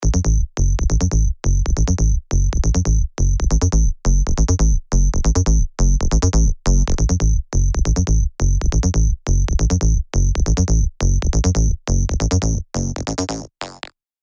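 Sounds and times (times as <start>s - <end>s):
bassline: 0.0s - 13.9s.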